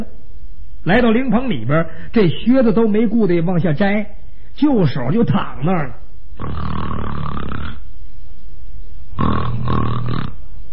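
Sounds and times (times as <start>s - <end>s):
speech: 0.8s - 7.3s
man imitating snoring: 6.4s - 7.9s, 9.2s - 10.4s.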